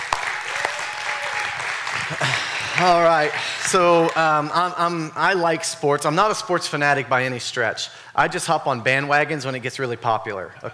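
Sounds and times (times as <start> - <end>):
crowd applauding a couple on their new home: 0.0 - 4.5
speech: 2.1 - 10.7.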